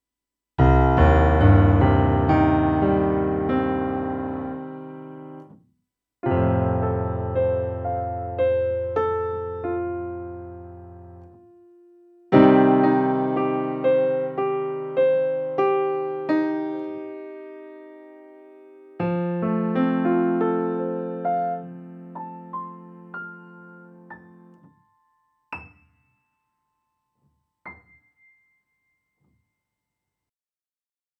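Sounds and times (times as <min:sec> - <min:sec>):
piano: 0:00.6 - 0:05.6, 0:06.2 - 0:29.2.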